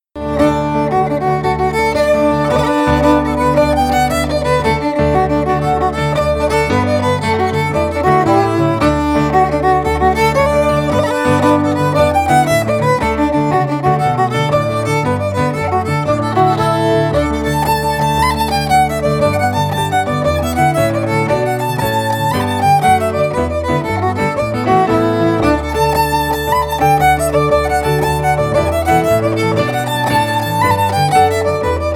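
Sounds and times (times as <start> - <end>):
fiddle: 0.0 - 31.9.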